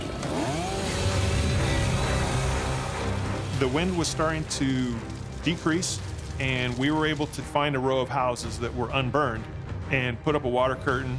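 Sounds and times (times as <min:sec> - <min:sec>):
chainsaw cutting through backyard fence: 0:00.0 - 0:05.5
speech: 0:03.6 - 0:11.1.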